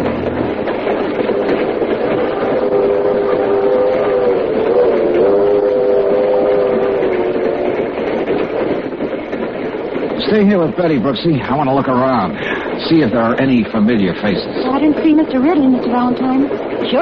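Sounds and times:
moving train rumbling: 0.0 - 17.0
steam whistle: 2.4 - 8.0
speech: 10.3 - 17.0.

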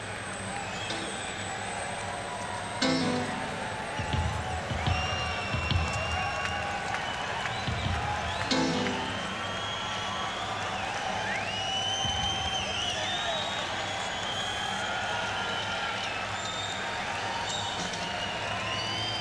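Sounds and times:
crowd noise: 0.0 - 19.1.

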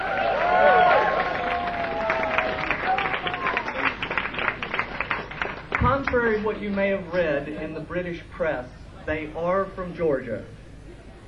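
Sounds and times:
crowd cheering and whooping: 0.0 - 4.6
large audience applause: 0.0 - 6.3
speech: 6.1 - 10.6.

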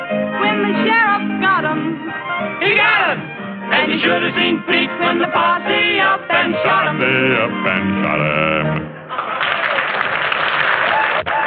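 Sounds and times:
speech: 0.6 - 8.9
saloon crowd applauding a performer: 9.1 - 11.4.

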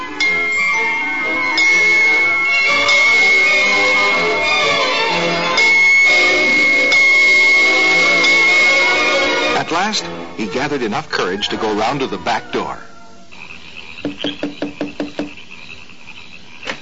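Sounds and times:
bells ringing down the road: 0.0 - 12.2
speech: 9.9 - 12.9.

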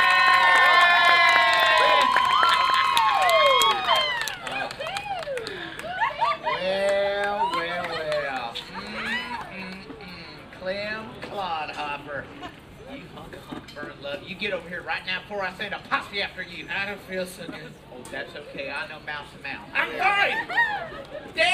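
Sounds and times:
audience cheering and whooping as a daughter is welcomed onstage: 0.0 - 9.6
laughter: 4.3 - 10.3, 20.0 - 21.5
speech: 15.3 - 21.5.

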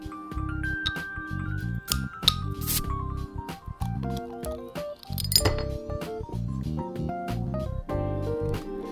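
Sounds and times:
steady music: 0.0 - 8.9
beer bottle opening hiss: 1.9 - 3.0, 4.4 - 5.5
glassy clinks of a beer bottle: 4.5 - 5.8.

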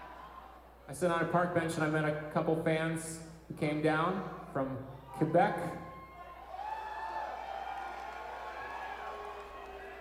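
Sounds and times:
speech: 0.9 - 5.9
audience booing: 5.8 - 10.0.

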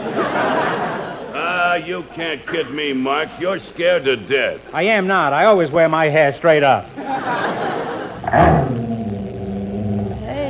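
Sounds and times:
laughter: 0.0 - 3.0, 7.0 - 8.4
speech: 1.8 - 7.4, 8.3 - 8.6
dog growling: 8.2 - 10.4.

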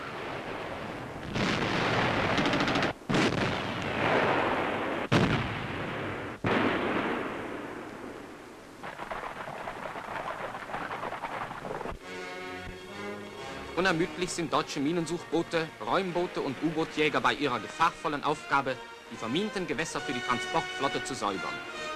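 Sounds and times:
artillery fire: 0.0 - 12.0
speech: 13.8 - 21.8.

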